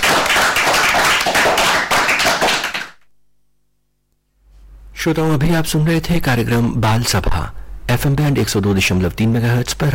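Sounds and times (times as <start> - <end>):
loud applause: 0.0 - 3.0
speech: 5.0 - 9.9.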